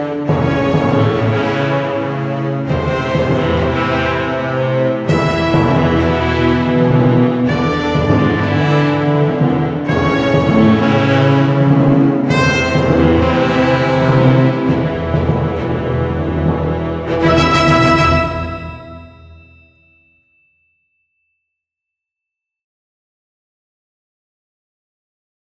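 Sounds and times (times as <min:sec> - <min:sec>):
orchestral arrangement: 0:00.0 - 0:19.6.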